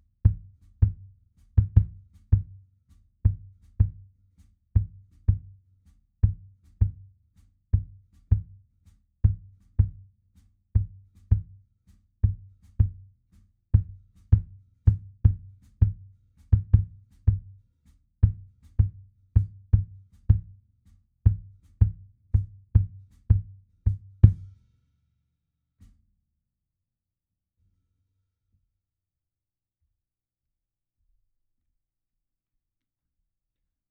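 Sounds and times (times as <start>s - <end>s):
kick drum: 0.0s - 24.6s
percussion intro: 0.0s - 24.8s.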